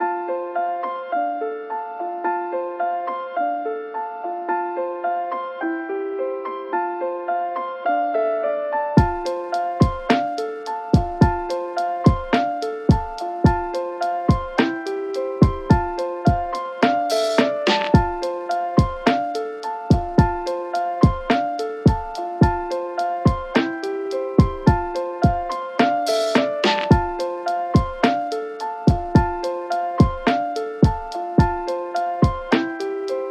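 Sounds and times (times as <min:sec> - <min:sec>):
instrumental music: 0:00.0 - 0:33.3.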